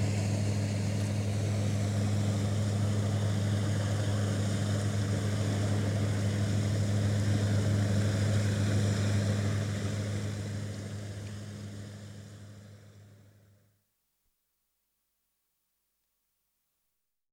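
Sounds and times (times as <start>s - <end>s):
27ft cabin cruiser with 50hp diesel engine departing, recorded on shore: 0.0s - 13.4s.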